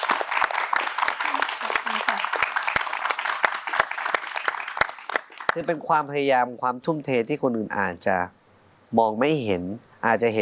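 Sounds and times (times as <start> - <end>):
audience applause: 0.0 - 5.8
speech: 5.6 - 10.4.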